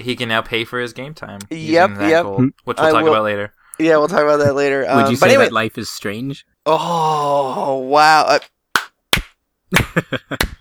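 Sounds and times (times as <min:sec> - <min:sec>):
speech: 0:00.0 - 0:08.6, 0:09.7 - 0:10.6
slow hand claps: 0:08.8 - 0:10.6.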